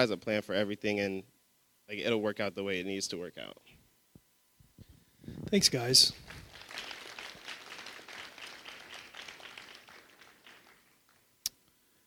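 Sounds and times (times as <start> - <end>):
speech: 0.0 - 3.8, 5.3 - 6.4
audience applause: 6.2 - 11.3.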